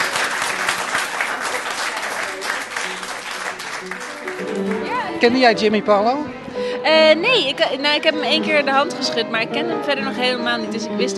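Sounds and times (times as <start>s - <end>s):
audience applause: 0.0s - 5.2s
speech: 4.6s - 11.1s.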